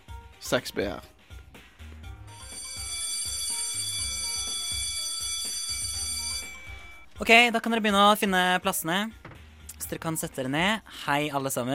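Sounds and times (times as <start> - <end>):
speech: 0.4 - 1.1, 7.2 - 9.2, 9.9 - 11.7
school bell ringing: 2.3 - 7.2.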